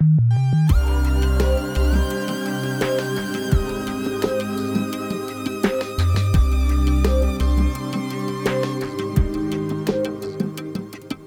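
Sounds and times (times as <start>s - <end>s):
synth: 0.7s - 11.2s.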